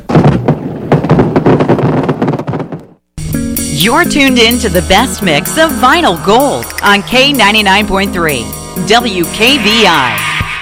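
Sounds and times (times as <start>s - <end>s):
fireworks explosions: 0.0s - 3.0s
speech: 3.8s - 10.3s.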